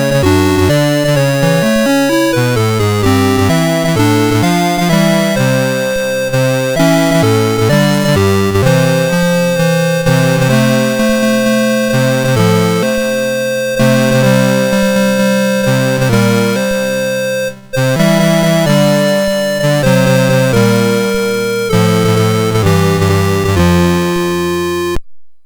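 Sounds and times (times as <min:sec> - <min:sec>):
chiptune Christmas song on a MOS6581R2 sound chip: 0:00.0 - 0:25.0.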